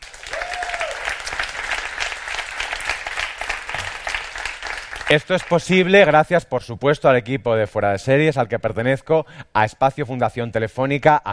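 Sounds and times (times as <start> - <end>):
audience applause: 0.0 - 5.7
speech: 5.1 - 11.3.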